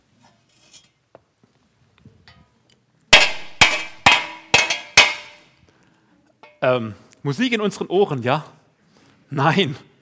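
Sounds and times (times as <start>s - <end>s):
loud metallic clangs: 3.2s - 5.5s
speech: 6.6s - 8.6s, 9.3s - 10.0s.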